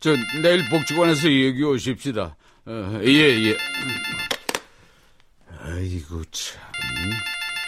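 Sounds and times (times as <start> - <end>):
phone electronic ringtone: 0.0 - 1.4, 3.1 - 4.4, 6.7 - 7.6
speech: 0.0 - 4.3, 5.6 - 7.4.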